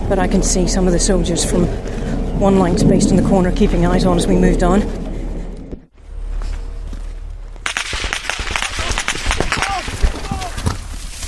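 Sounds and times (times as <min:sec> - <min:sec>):
speech: 0:00.1 - 0:05.0
gunfire crackling near a compound between fields: 0:07.6 - 0:10.5.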